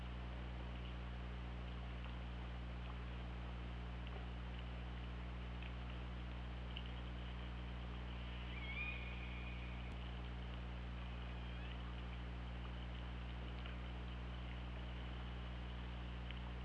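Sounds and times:
low hum: 0:00.0 - 0:16.6
orca call: 0:08.2 - 0:09.9.

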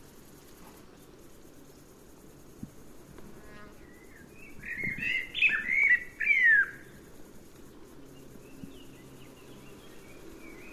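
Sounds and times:
quiet background hiss: 0:00.0 - 0:10.7
common blackbird whistled calls: 0:03.9 - 0:06.9.

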